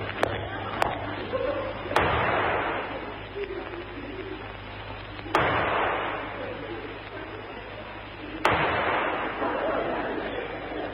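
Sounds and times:
steady low hum: 0.0 - 10.9
laughter: 0.3 - 5.4, 6.2 - 8.5, 9.1 - 10.9
pistols fired in a duel: 5.3 - 6.2, 8.4 - 9.4.

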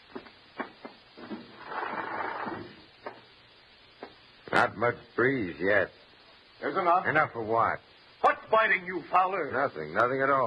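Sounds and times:
window being opened with a wooden scrape and slide: 1.2 - 2.8
speech: 4.6 - 6.0, 6.6 - 7.9, 8.5 - 10.4.

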